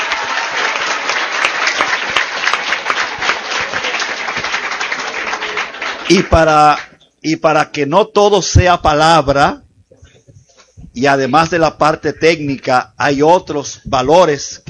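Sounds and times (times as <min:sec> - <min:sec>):
audience applause: 0:00.0 - 0:06.9
speech: 0:06.1 - 0:09.6, 0:11.0 - 0:14.6.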